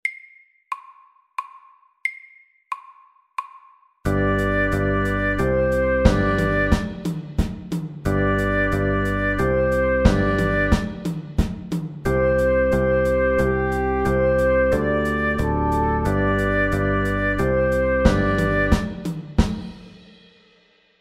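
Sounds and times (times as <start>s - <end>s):
fusion music: 4.1s - 19.7s.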